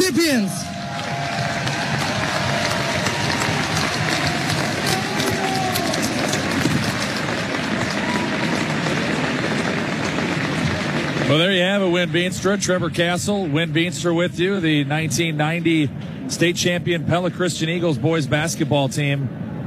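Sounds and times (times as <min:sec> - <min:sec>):
crowd applause: 0:00.0 - 0:12.6
speech: 0:00.2 - 0:00.7, 0:11.3 - 0:19.5.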